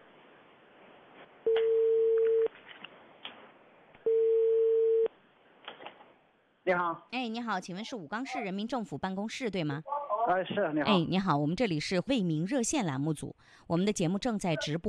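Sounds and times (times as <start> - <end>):
telephone dialing tone: 1.5 - 2.5, 4.1 - 5.1
speech: 6.7 - 14.8.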